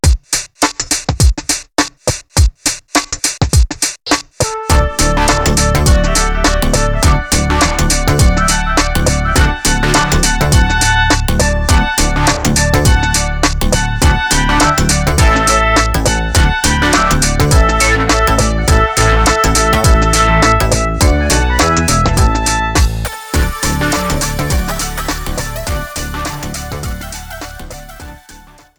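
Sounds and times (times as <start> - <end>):
music: 0.0 - 28.7.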